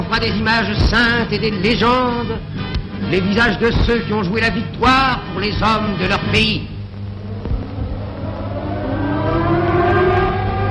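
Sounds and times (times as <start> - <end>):
speech: 0.1 - 6.7
air raid sirens wailing: 7.0 - 10.6.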